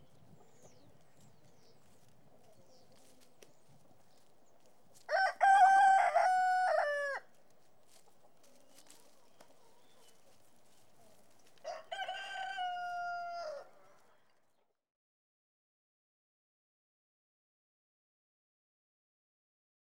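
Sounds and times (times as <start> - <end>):
chicken crowing: 5.1 - 7.3, 11.6 - 13.8.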